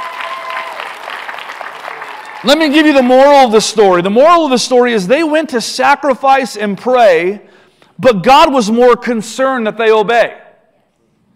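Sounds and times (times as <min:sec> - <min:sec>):
large crowd applause: 0:00.0 - 0:03.3
speech: 0:02.4 - 0:10.4.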